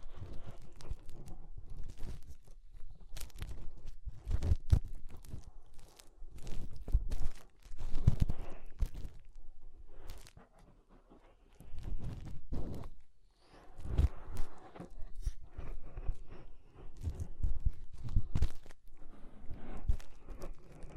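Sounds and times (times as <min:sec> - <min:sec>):
fingers rubbing and pressing in an inner ear: 0:00.0 - 0:20.9.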